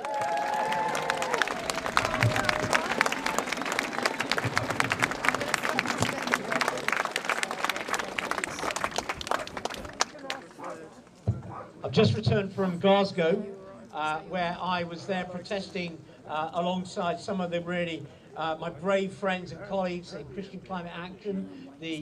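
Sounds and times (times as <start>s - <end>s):
cheering voices: 0.0s - 10.6s
crowd applause: 0.0s - 10.9s
speech: 12.0s - 21.9s.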